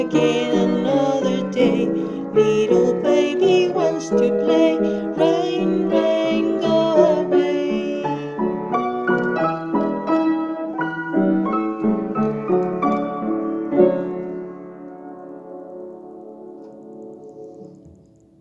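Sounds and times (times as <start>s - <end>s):
person singing a nursery rhyme: 0.0s - 8.8s
piano: 0.0s - 18.3s.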